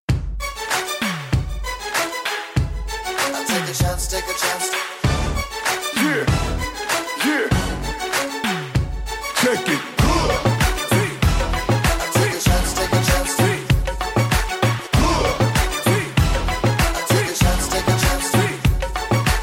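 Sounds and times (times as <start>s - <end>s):
Windows 8 theme: 0.4s - 19.4s.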